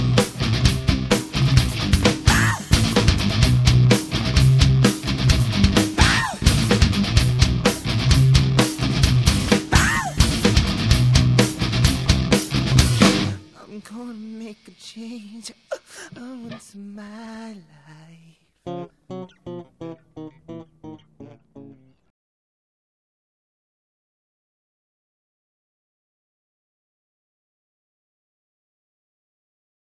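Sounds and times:
party music: 0.0s - 16.6s.

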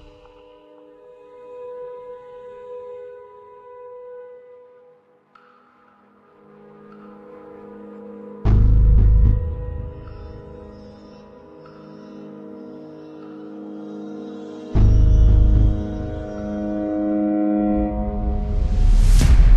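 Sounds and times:
ambient menu music: 6.8s - 19.4s.

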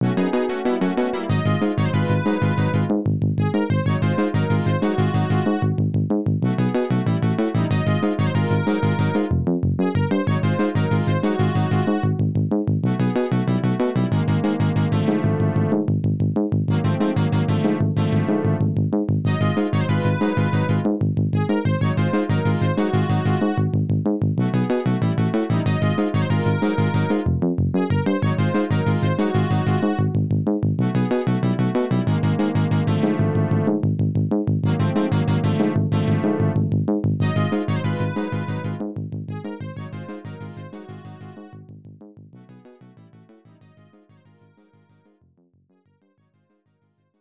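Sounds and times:
unused background music: 0.0s - 41.7s.

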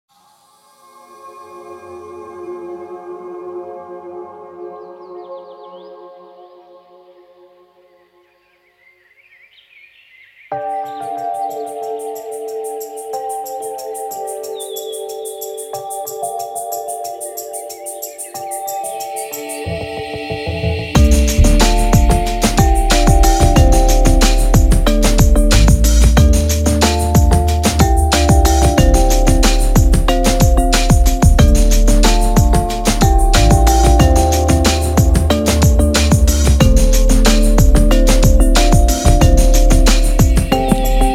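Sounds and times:
forest stage background music loop: 19.4s - 41.1s.

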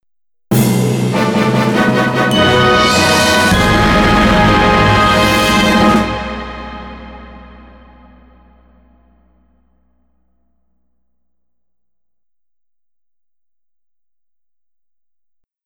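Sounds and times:
victory fanfare: 0.6s - 8.5s.

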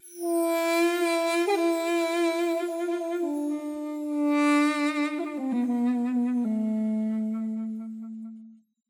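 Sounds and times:
duduk: 0.2s - 8.4s.

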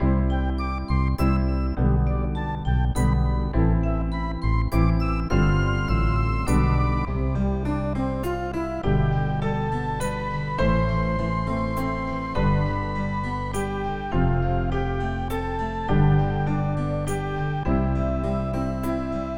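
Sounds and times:
instrumental music: 0.0s - 19.3s.

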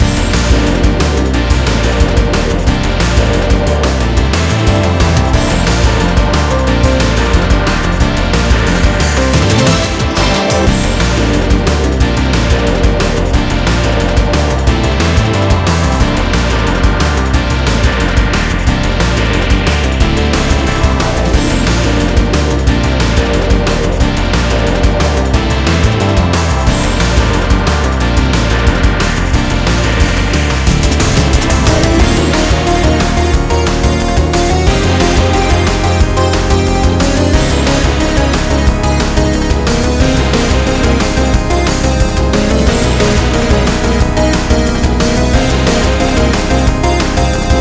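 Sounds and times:
boss battle background music: 0.0s - 47.6s.

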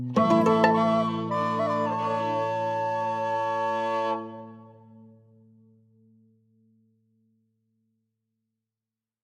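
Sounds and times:
end stinger: 0.1s - 5.1s.

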